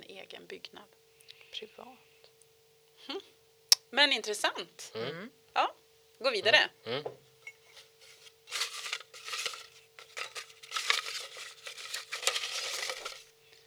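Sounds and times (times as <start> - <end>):
faint steady hum: 0.0 - 13.6
speech: 0.5 - 1.0, 1.6 - 2.1, 3.0 - 7.2
paper rustling and crinkling: 7.7 - 13.4.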